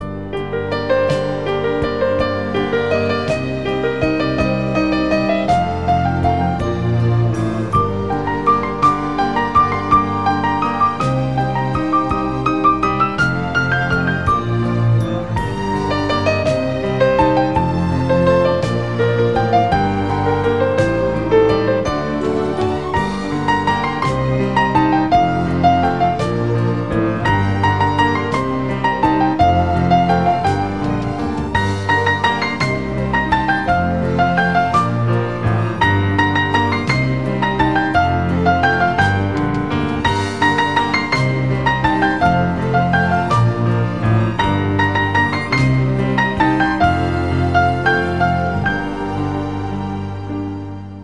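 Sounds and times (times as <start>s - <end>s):
beautiful piano melody: 0.0s - 51.0s.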